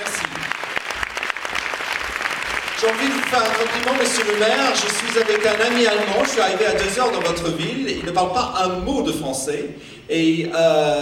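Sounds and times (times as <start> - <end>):
crowd applauding: 0.0 - 8.3
speech: 2.8 - 11.0.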